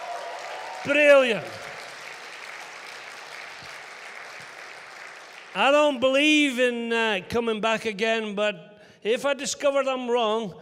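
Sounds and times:
audience clapping: 0:00.0 - 0:06.5
speech: 0:00.8 - 0:01.7, 0:05.6 - 0:10.6.

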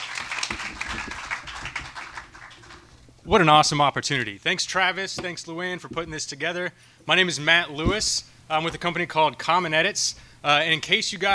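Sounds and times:
crowd applauding a speaker: 0:00.0 - 0:03.0
speech: 0:03.3 - 0:11.3.

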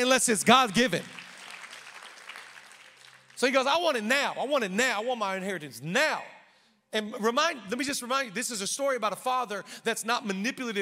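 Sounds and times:
speech: 0:00.0 - 0:01.2, 0:03.4 - 0:10.8
audience clapping: 0:00.5 - 0:03.7.

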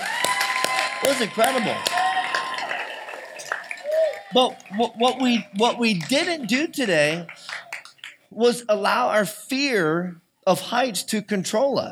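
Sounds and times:
audience round of applause: 0:00.0 - 0:08.2
speech: 0:01.0 - 0:01.9, 0:04.3 - 0:07.4, 0:08.3 - 0:11.8.

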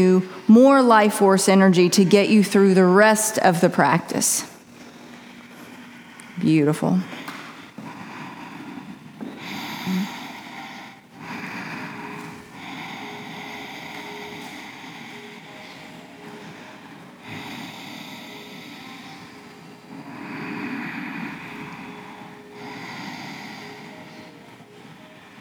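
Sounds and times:
speech: 0:00.0 - 0:04.5, 0:06.4 - 0:07.3
deep slow breathing during yoga practice: 0:04.7 - 0:06.4, 0:07.0 - 0:25.3.

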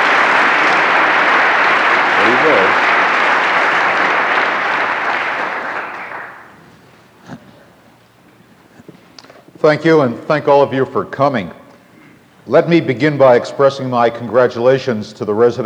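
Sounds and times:
audience applause welcoming Rabbi Kushner at Westminster Church event in Minneapolis: 0:00.0 - 0:06.6
speech: 0:09.6 - 0:11.6, 0:12.5 - 0:15.6.

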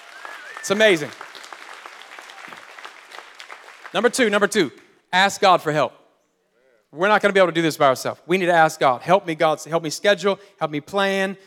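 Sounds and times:
audience clapping: 0:00.0 - 0:05.0
speech: 0:00.6 - 0:01.2, 0:03.9 - 0:06.0, 0:06.9 - 0:11.4.

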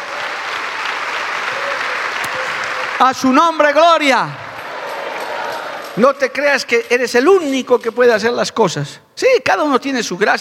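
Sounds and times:
audience applause: 0:00.0 - 0:06.0
speech: 0:03.0 - 0:04.4, 0:06.0 - 0:10.3.

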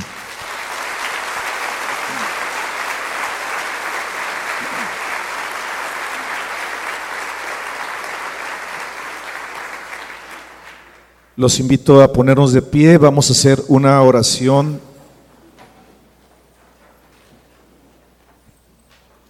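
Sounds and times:
sustained loud applause from a large crowd: 0:00.0 - 0:11.3
speech: 0:11.4 - 0:14.9.

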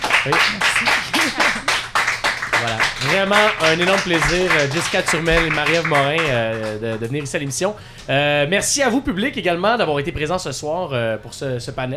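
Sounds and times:
audience applause: 0:00.0 - 0:07.6
speech: 0:00.2 - 0:01.5, 0:02.6 - 0:11.9.

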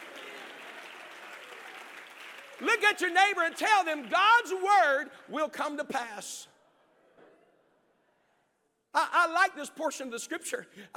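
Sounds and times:
audience clapping hands: 0:00.0 - 0:06.0
speech: 0:02.6 - 0:06.5, 0:09.0 - 0:10.9.

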